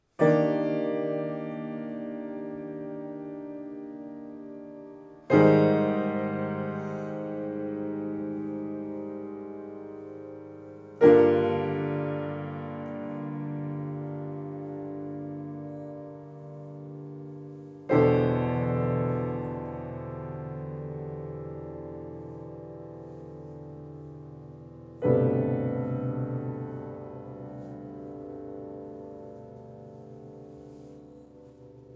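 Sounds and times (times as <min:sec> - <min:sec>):
piano: 0:00.0 - 0:31.9.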